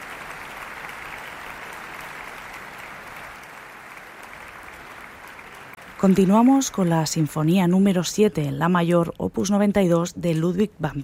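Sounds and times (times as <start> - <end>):
concert audience applause: 0.0 - 6.9
speech: 6.0 - 11.0.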